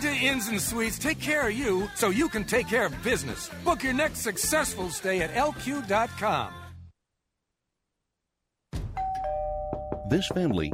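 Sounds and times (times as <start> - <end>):
speech: 0.1 - 6.6, 10.1 - 10.7
doorbell chiming a two-note ding-dong: 9.0 - 10.7.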